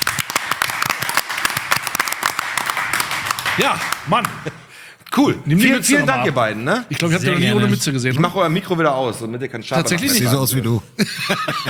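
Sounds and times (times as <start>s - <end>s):
live applause: 0.0s - 4.8s
laughter: 3.6s - 4.8s, 11.0s - 11.6s
speech: 3.6s - 11.6s.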